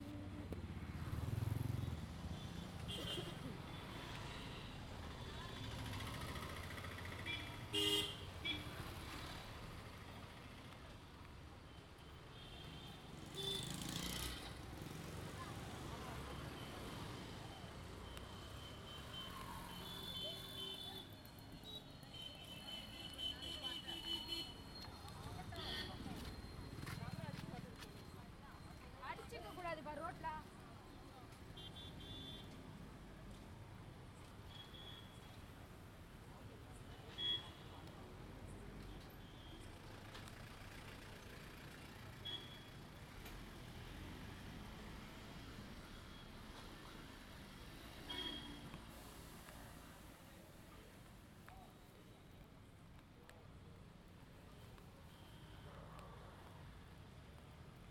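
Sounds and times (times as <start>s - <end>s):
street ambience: 0.0s - 57.9s.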